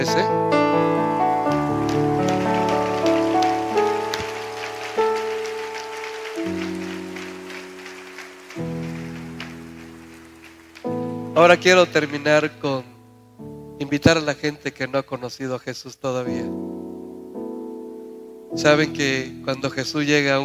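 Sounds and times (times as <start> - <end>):
speech: 0.0 - 0.5, 11.4 - 12.9, 13.8 - 16.7, 18.6 - 20.4
people clapping: 0.9 - 11.9.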